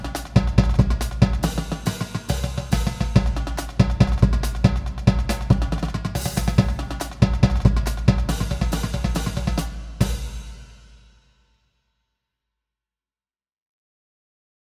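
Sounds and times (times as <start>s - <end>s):
jig music: 0.0s - 10.7s.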